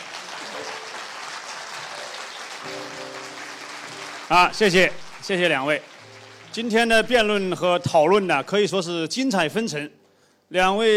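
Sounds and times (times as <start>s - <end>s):
audience applause: 0.0s - 7.6s
speech: 4.3s - 5.9s, 6.6s - 10.9s.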